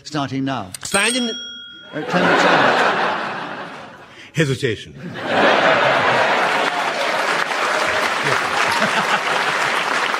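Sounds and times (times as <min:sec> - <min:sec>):
speech: 0:00.1 - 0:03.2, 0:04.4 - 0:05.9
laughter: 0:01.9 - 0:04.2, 0:05.0 - 0:10.1
audience applause: 0:05.3 - 0:10.1.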